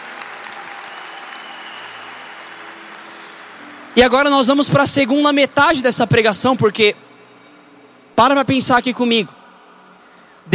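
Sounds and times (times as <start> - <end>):
audience applause: 0.0 - 4.0
speech: 4.0 - 7.1, 8.2 - 9.4.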